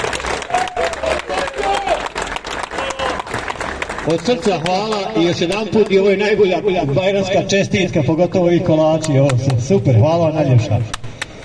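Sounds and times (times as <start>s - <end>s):
cyclists applauding their hosts: 0.0s - 6.2s, 10.9s - 11.4s
speech: 4.0s - 11.0s.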